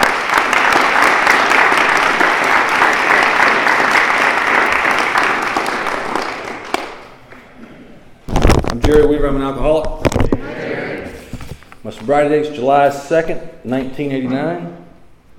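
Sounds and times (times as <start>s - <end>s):
audience applause: 0.0s - 7.1s
speech: 8.9s - 10.0s, 11.9s - 14.8s.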